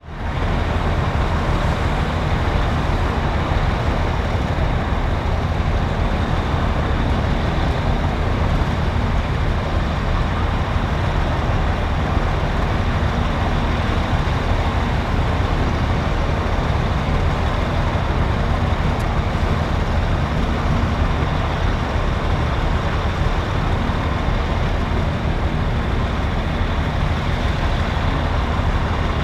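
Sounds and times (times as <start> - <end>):
commercial transport hovercraft idling: 0.0 - 29.2.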